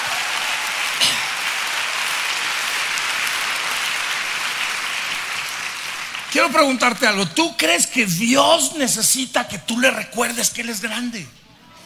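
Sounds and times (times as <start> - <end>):
audience applause: 0.0 - 7.7
speech: 6.4 - 11.4.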